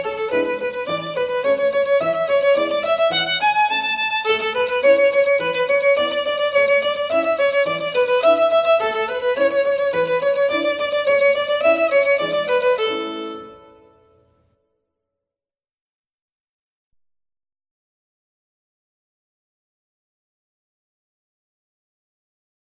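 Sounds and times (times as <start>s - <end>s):
violin: 0.0s - 14.3s.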